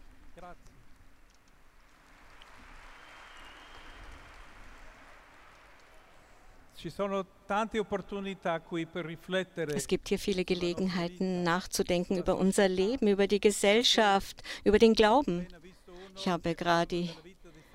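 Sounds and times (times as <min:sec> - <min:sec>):
speech: 0:00.4 - 0:00.9, 0:06.8 - 0:17.3
audience applause: 0:01.8 - 0:06.6.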